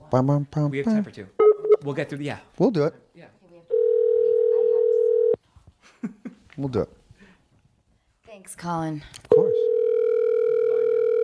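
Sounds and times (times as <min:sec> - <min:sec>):
speech: 0:00.1 - 0:03.4, 0:06.0 - 0:07.0, 0:08.4 - 0:09.5
telephone dial tone: 0:03.7 - 0:05.4, 0:09.4 - 0:11.2.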